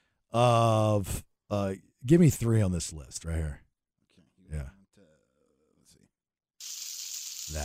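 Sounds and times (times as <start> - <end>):
speech: 0.3 - 3.6
steak sizzling on a grill: 6.6 - 7.6.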